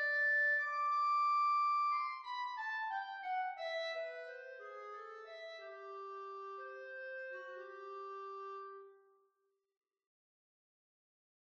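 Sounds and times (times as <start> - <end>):
clarinet: 0.0 - 9.0.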